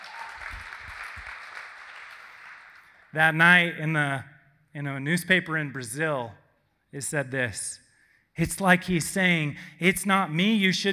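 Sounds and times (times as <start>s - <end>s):
audience applause: 0.0s - 3.1s
speech: 3.1s - 7.8s, 8.4s - 10.9s.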